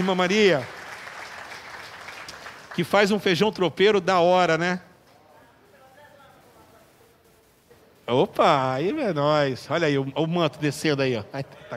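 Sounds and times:
speech: 0:00.0 - 0:00.8, 0:02.8 - 0:04.9, 0:08.1 - 0:11.7
audience applauding: 0:00.0 - 0:03.6.

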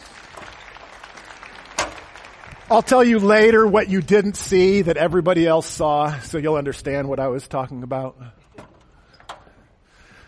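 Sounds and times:
crowd clapping: 0:00.0 - 0:03.7
speech: 0:02.7 - 0:08.4.

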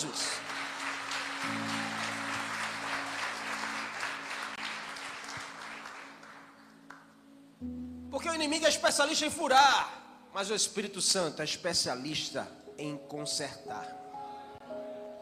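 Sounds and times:
church congregation applauding during a sermon: 0:00.0 - 0:07.2
speech: 0:07.6 - 0:14.0.

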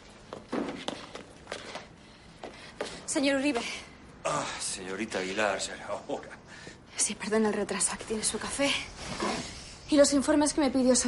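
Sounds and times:
footsteps walking up to a terrace: 0:00.0 - 0:03.1
speech: 0:03.1 - 0:11.0.

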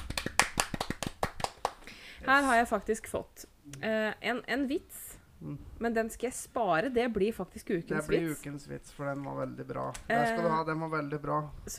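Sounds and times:
applause: 0:00.0 - 0:01.9
speech: 0:02.2 - 0:11.7.

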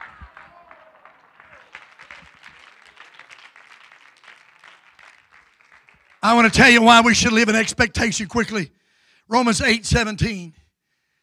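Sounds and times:
audience clapping hands: 0:00.0 - 0:07.1
speech: 0:06.2 - 0:10.6.

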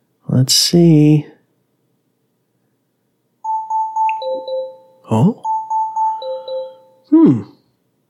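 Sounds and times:
speech: 0:00.4 - 0:01.3, 0:05.1 - 0:05.5, 0:07.2 - 0:07.5
voice assistant timer alarm going off: 0:03.4 - 0:07.2
short vocal bursts: 0:07.1 - 0:07.6.

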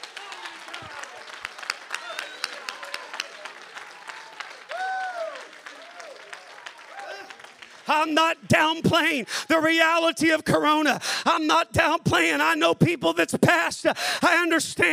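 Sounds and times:
audience clapping hands: 0:00.0 - 0:09.5
speech: 0:07.9 - 0:14.9.

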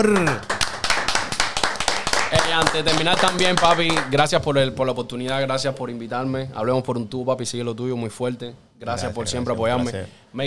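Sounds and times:
speech: 0:00.0 - 0:00.5, 0:02.5 - 0:10.4
applause: 0:00.0 - 0:04.3.

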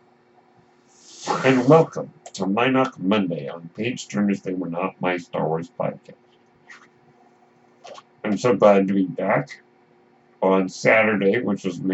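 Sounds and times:
faint hum: 0:00.0 - 0:11.9
medical ventilator hiss: 0:00.9 - 0:02.0
speech: 0:01.4 - 0:06.2, 0:08.3 - 0:09.6, 0:10.4 - 0:11.9.

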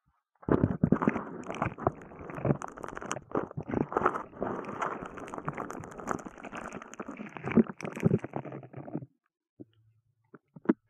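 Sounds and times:
sponge squeezed and rubbed squishing: 0:00.8 - 0:09.0
bubble wrap squeezed and popping: 0:01.7 - 0:08.2.

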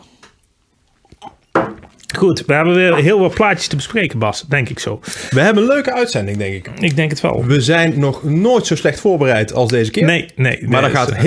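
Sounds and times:
glasses clinking in a toast: 0:01.2 - 0:02.0
speech: 0:02.2 - 0:11.2.

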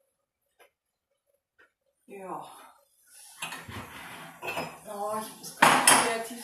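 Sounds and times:
speech: 0:02.1 - 0:02.7
ceramic cups and dishes clinking while making tea: 0:03.4 - 0:04.8.

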